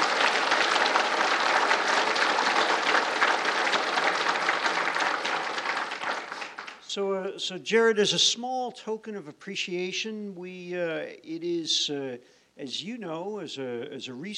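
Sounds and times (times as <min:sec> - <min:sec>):
crowd applauding: 0:00.0 - 0:06.9
speech: 0:06.9 - 0:14.3.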